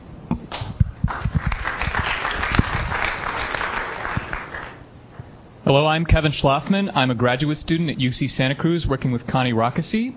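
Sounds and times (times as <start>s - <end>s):
crowd applauding: 1.0s - 4.8s
speech: 5.7s - 10.1s.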